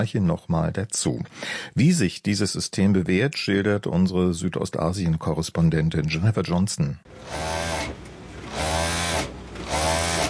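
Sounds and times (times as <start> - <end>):
speech: 0.0 - 8.0
sewing machine running: 7.1 - 10.2.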